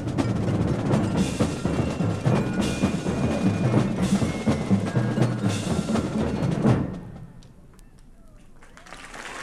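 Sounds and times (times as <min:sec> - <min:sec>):
drum solo: 0:00.0 - 0:07.3.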